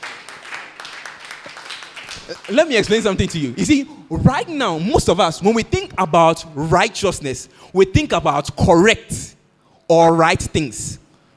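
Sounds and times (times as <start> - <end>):
audience clapping hands: 0.0 - 3.8
speech: 2.3 - 9.3, 9.9 - 11.0.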